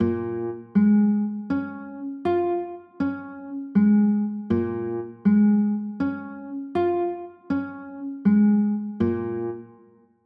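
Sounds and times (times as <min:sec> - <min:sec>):
B flat minor chords: 0:00.0 - 0:09.8.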